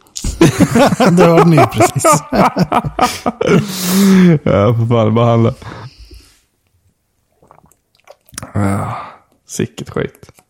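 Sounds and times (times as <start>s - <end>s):
laughter: 0.2s - 3.8s
speech: 0.4s - 5.9s, 8.6s - 10.4s
person drinking water: 7.2s - 9.4s.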